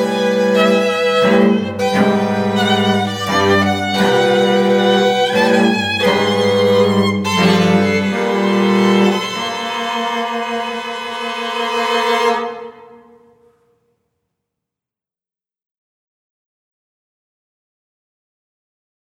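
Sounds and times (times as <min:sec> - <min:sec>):
string trio playing: 0:00.0 - 0:13.6.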